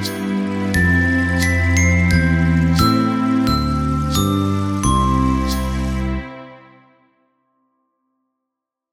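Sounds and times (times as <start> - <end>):
chime bars: 0.0 - 6.3.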